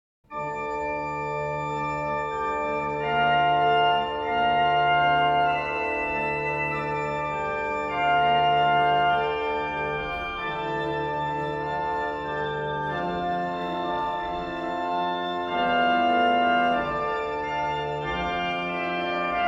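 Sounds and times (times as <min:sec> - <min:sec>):
chorale prelude music: 0:00.3 - 0:19.4.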